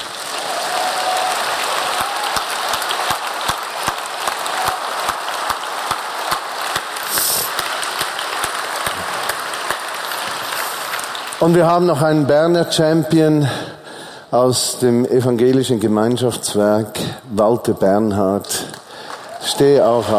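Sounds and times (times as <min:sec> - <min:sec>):
audience clapping: 0:00.0 - 0:12.3, 0:18.4 - 0:20.1
speech: 0:11.4 - 0:13.7, 0:14.3 - 0:18.7, 0:19.4 - 0:20.1.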